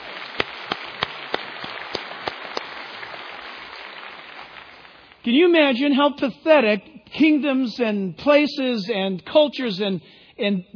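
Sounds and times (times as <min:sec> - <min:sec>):
crowd clapping: 0:00.0 - 0:05.3
speech: 0:05.2 - 0:10.7.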